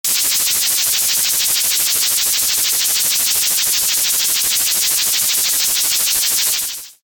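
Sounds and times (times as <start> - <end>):
sprinkler: 0.0 - 7.0.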